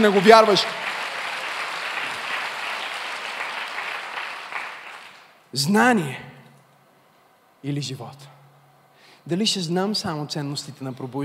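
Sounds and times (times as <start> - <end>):
speech: 0.0 - 0.9, 5.5 - 6.3, 7.6 - 8.4, 9.2 - 11.2
audience applauding: 0.0 - 5.4.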